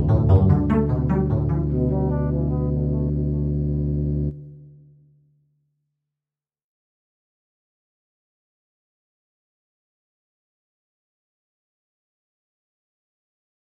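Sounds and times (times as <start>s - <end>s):
slendro scale melody from modulo arithmetic seeds: 0.0s - 4.8s.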